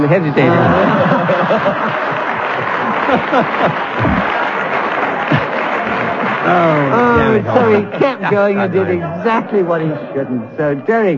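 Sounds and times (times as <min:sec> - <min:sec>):
scattered chuckles and murmuring voices: 0:00.0 - 0:11.1
speech: 0:00.1 - 0:04.4, 0:06.4 - 0:11.1
audience applause: 0:00.2 - 0:09.0.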